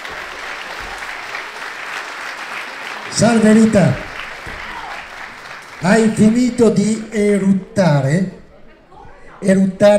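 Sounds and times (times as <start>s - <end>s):
audience applause: 0.0s - 7.1s
speech: 3.1s - 4.1s, 5.8s - 8.4s, 9.4s - 9.9s.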